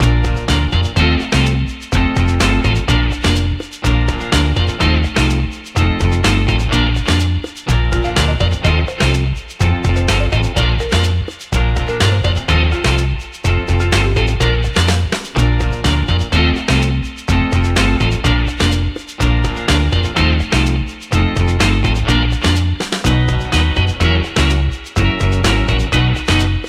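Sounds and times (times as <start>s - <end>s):
timer music: 0.0s - 26.6s.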